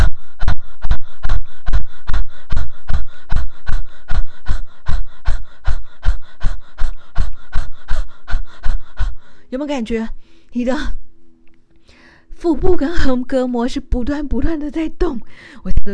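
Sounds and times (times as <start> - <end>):
rapid breathing in through the nose and out through the mouth: 0.0 - 9.6
speech: 9.5 - 11.0, 12.4 - 15.9.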